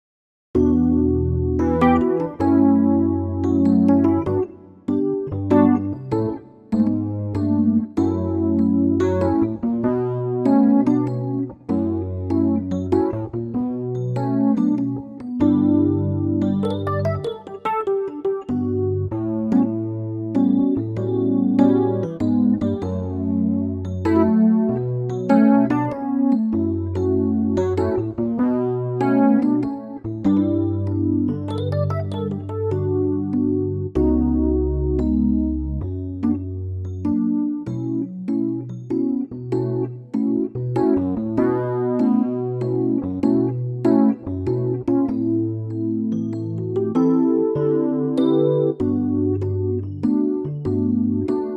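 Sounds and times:
Rhodes electric piano in D: 0.6s - 51.5s.

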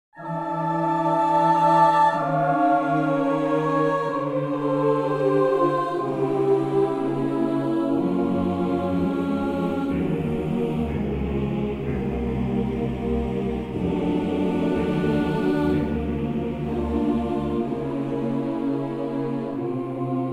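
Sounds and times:
choir singing in B flat: 0.2s - 20.3s.

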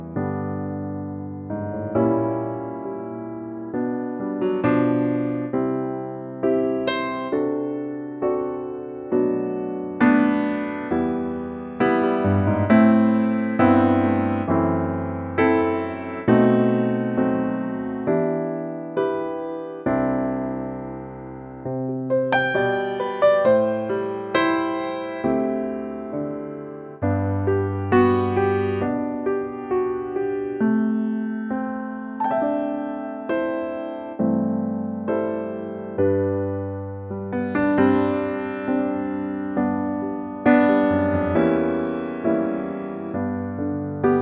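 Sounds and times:
G piano note: 0.0s - 44.2s.

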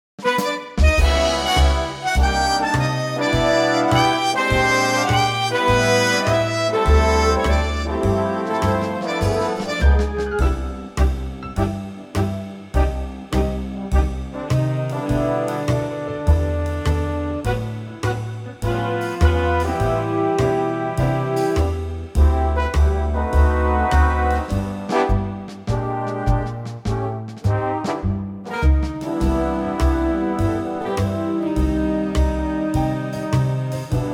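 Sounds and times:
big band music in G: 0.2s - 34.1s.

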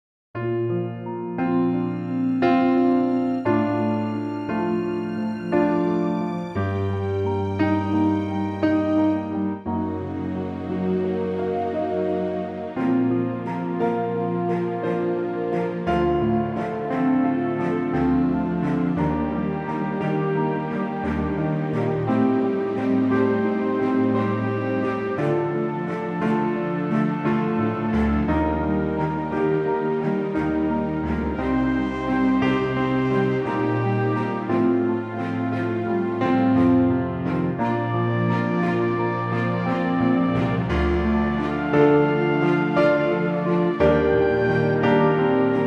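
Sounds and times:
orchestral music in B flat: 0.4s - 45.6s.

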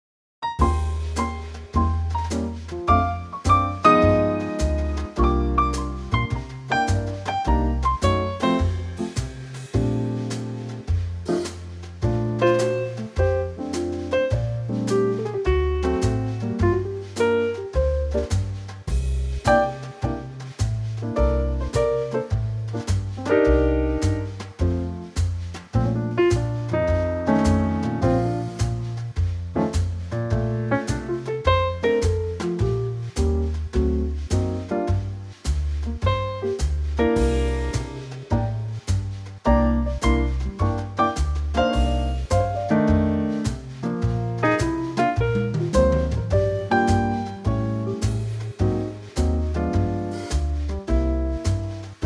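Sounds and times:
B flat instrumental trio: 0.4s - 52.0s.

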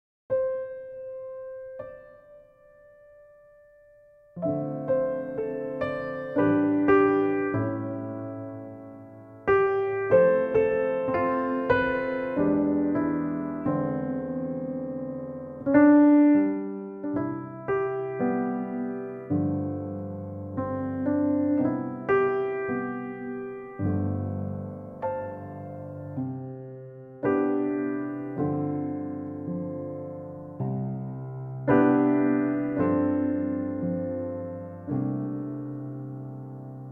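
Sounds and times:
piano: 0.3s - 36.8s.

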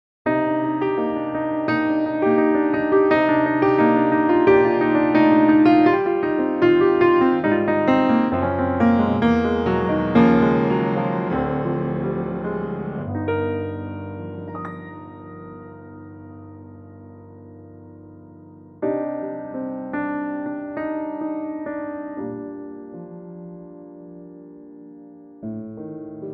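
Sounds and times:
piano in C minor: 0.2s - 26.3s.

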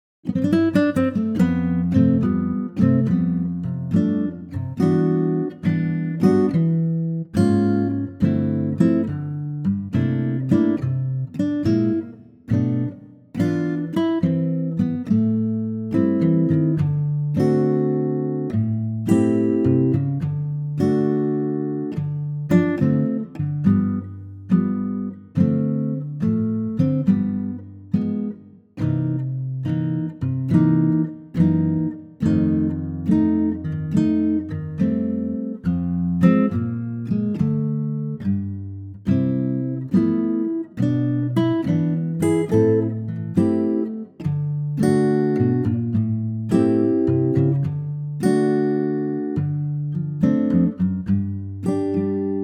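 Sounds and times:
acoustic guitar in C: 0.2s - 52.4s.

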